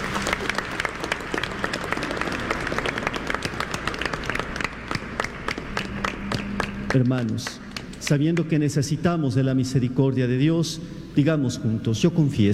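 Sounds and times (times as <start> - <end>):
audience applauding: 0.0 - 8.6
speech: 6.9 - 12.5.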